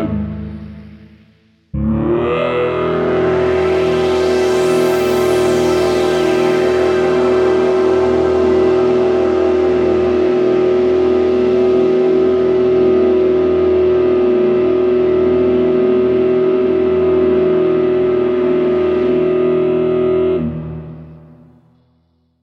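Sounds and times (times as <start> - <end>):
Korg KROSS 2 synthesizer combis: 0.2 - 21.6.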